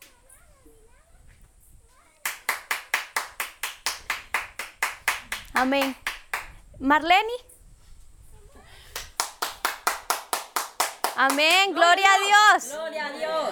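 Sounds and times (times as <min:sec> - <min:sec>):
audience clapping hands: 0:02.2 - 0:06.6, 0:09.0 - 0:11.8
speech: 0:05.6 - 0:06.0, 0:06.8 - 0:07.5, 0:11.2 - 0:13.4.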